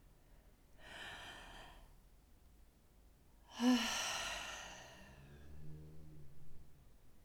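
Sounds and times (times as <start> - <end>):
person sighing: 3.5 - 4.7.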